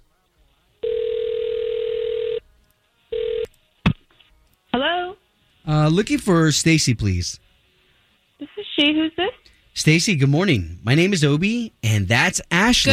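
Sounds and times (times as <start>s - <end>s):
telephone ringing tone: 0.8s - 2.4s, 3.1s - 3.5s
speech: 5.7s - 7.5s, 8.8s - 12.9s.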